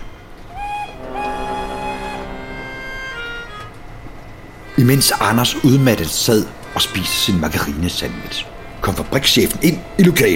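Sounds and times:
factory steam whistle: 0.0 - 5.6
low rumbling: 0.0 - 6.9
speech: 4.8 - 10.3.

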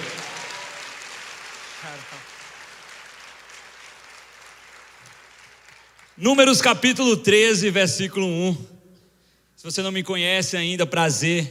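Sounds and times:
audience applause: 0.0 - 6.2
speech: 1.8 - 2.4, 6.2 - 8.7, 9.6 - 11.4.

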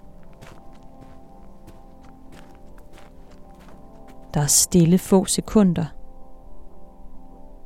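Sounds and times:
footsteps on the way to the theatre's front steps: 0.0 - 4.4
speech: 4.4 - 6.0.

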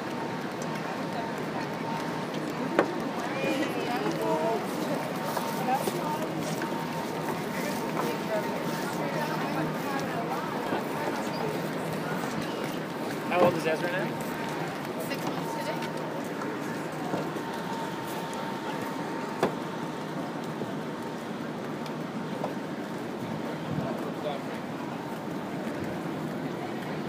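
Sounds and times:
murmured conversations on the High Line in New York City: 0.4 - 27.0.

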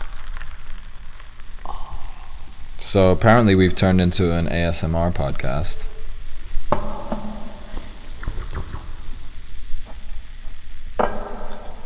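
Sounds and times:
fizzing bubbles in poured beer: 0.0 - 11.8
speech: 2.8 - 5.9.

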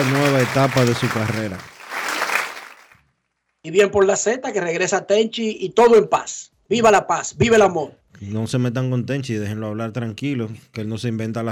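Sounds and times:
speech: 0.0 - 1.8, 3.6 - 11.5
applause sound effect: 0.0 - 3.0.

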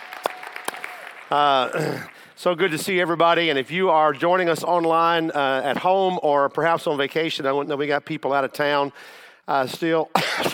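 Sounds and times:
audience applause: 0.0 - 2.4
speech: 1.3 - 10.5.

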